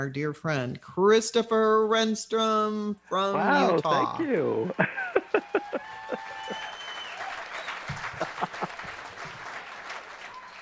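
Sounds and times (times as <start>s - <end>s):
speech: 0.0s - 5.7s
laughter: 3.4s - 6.8s, 7.8s - 9.6s
crowd applauding: 4.2s - 10.6s
whoops and whistle-like calls: 5.6s - 8.0s, 10.2s - 10.6s.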